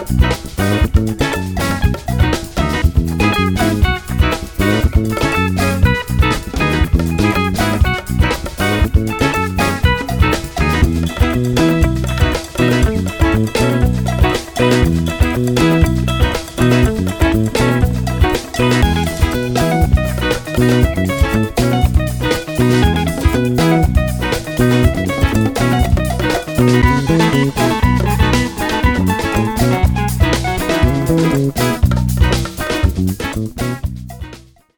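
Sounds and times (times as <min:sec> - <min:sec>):
West African highlife ensemble playing: 0:00.0 - 0:34.7.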